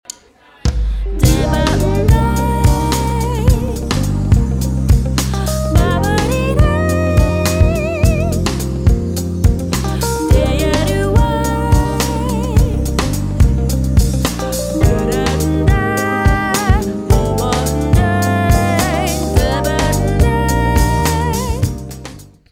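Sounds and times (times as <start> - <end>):
smooth jazz arpeggio: 1.1 - 22.4.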